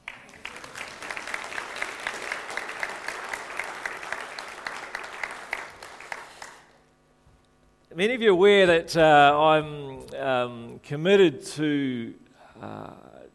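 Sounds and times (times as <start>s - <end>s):
audience applause in a church after thanks to a worship leader: 0.0s - 6.8s
speech: 8.0s - 13.1s.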